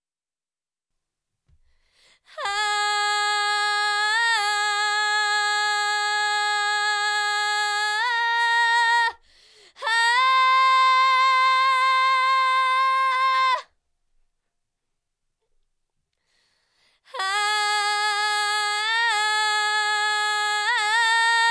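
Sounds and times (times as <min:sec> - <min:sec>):
melodic scream a cappella vocals: 0:02.3 - 0:13.7, 0:17.1 - 0:21.4.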